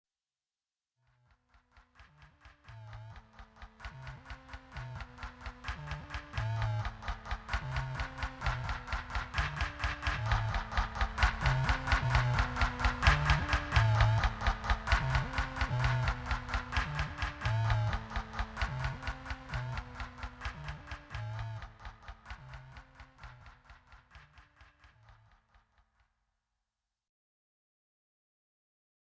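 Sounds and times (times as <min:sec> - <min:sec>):
truck: 0:02.8 - 0:23.6.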